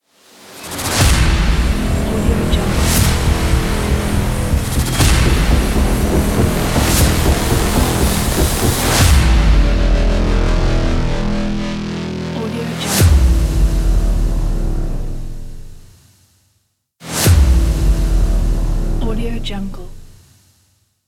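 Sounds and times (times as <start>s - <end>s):
epic ident hit: 0.3s - 16.0s, 17.0s - 20.2s.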